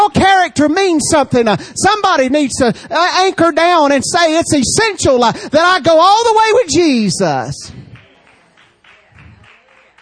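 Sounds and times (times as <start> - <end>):
speech: 0.6 - 7.8
scattered hand claps from a church congregation: 7.7 - 10.0.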